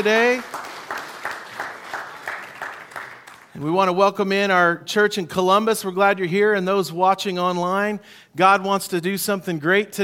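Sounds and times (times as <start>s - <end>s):
speech: 0.0s - 0.6s, 3.6s - 10.0s
audience applause for college students at a church service: 0.0s - 3.5s.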